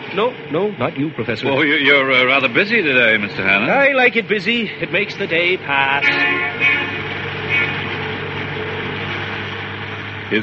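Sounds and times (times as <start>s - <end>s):
city bus engine and road noise in traffic: 0.0s - 10.4s
speech: 0.1s - 7.0s
high-pitched squeals: 5.8s - 8.2s.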